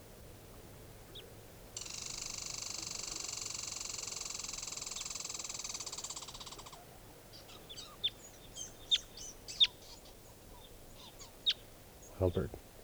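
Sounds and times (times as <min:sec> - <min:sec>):
wild birds chirping: 0:05.7 - 0:12.6
faint low rumbling: 0:12.1 - 0:12.6
speech: 0:12.2 - 0:12.6.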